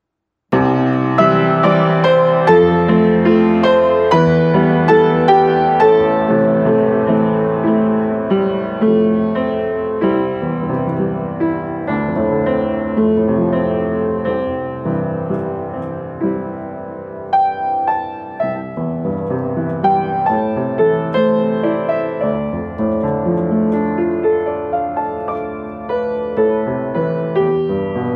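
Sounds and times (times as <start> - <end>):
piano: 0.0 - 28.1.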